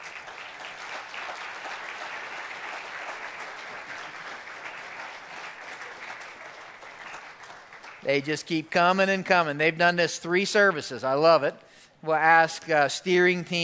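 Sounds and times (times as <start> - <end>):
church congregation applause during a morning service: 0.0 - 9.6
speech: 8.0 - 13.6.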